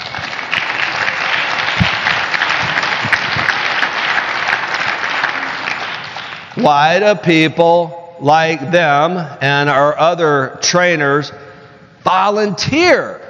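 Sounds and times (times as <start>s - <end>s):
audience applause: 0.0s - 6.9s
speech: 6.6s - 11.4s, 12.0s - 13.2s.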